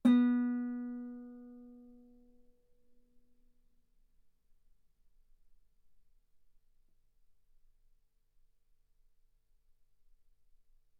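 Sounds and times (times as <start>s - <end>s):
guitar note B3: 0.0s - 1.8s.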